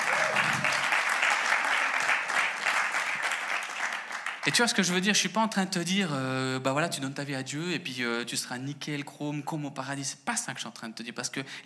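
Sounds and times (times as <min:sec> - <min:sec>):
audience applause: 0:00.0 - 0:04.5
speech: 0:04.4 - 0:11.6.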